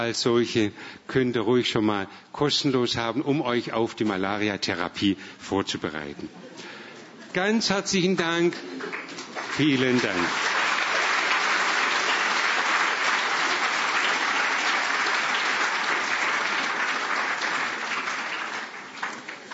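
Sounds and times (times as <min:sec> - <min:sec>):
speech: 0:00.0 - 0:06.7, 0:07.3 - 0:10.5
crowd applause: 0:08.5 - 0:19.5.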